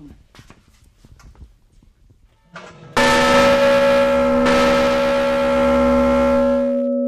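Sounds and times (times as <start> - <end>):
river boat bell clanged once: 3.0 - 6.9.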